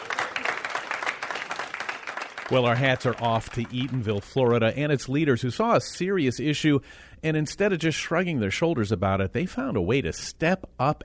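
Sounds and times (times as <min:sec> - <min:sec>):
audience applause: 0:00.0 - 0:04.5
speech: 0:02.5 - 0:11.0.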